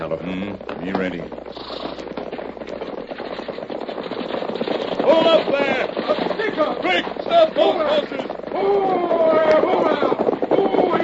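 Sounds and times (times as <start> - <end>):
speech: 0.0 - 1.8, 5.1 - 11.0
rapid continuous gunfire: 0.0 - 11.0.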